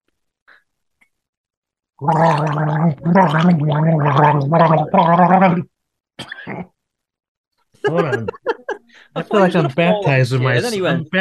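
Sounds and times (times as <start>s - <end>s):
person gargling water: 2.0s - 5.7s, 6.3s - 6.7s
speech: 2.0s - 6.7s, 7.8s - 11.1s
laughter: 7.8s - 11.1s.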